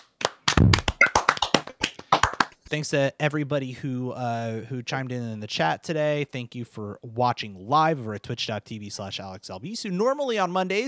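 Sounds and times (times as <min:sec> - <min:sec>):
hands clapping: 0:00.0 - 0:02.8
speech: 0:02.7 - 0:10.8.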